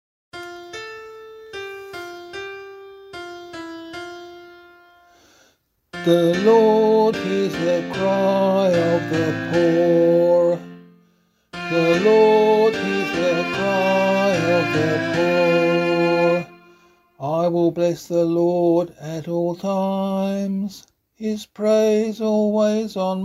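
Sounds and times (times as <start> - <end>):
psalm in C sung by voice: 6.0 - 10.9, 11.6 - 23.2.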